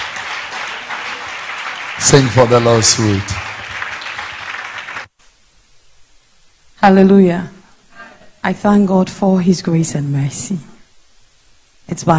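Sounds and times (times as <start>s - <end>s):
audience clapping: 0.0s - 5.2s
speech: 2.0s - 3.5s, 6.8s - 7.6s, 8.4s - 10.7s, 11.9s - 12.1s.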